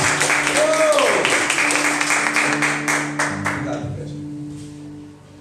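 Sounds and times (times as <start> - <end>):
crowd applause: 0.0 - 3.8.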